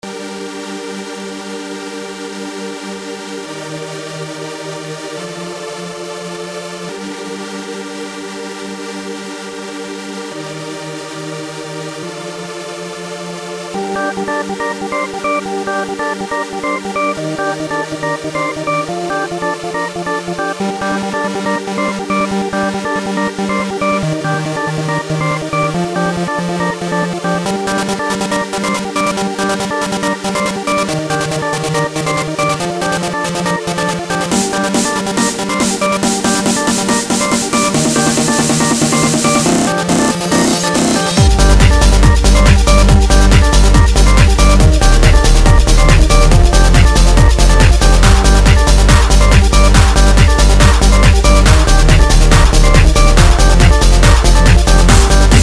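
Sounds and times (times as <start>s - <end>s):
keygen chiptune music: 13.7s - 55.4s.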